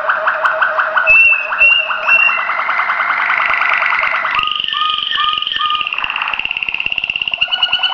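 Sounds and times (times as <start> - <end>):
Waterslager canary singing: 1.1 - 7.9.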